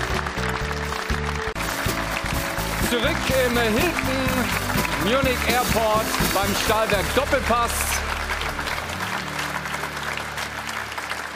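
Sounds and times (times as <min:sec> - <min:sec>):
studio audience applause: 0:00.0 - 0:11.3
speech: 0:02.9 - 0:08.1.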